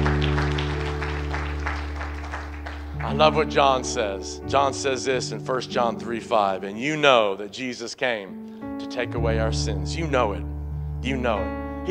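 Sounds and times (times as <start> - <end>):
audience clapping: 0.0 - 3.6
speech: 3.1 - 11.8.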